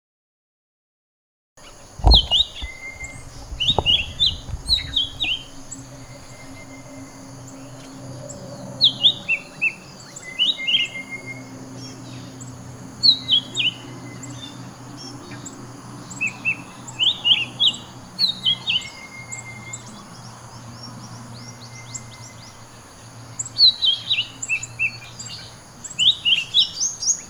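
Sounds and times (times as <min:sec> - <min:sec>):
bird chirping song: 0:01.6 - 0:27.2.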